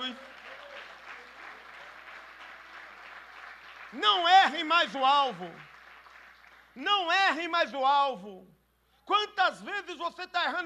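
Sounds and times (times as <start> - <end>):
audience applause: 0.0 - 6.7
speech: 3.9 - 5.7, 6.8 - 10.6.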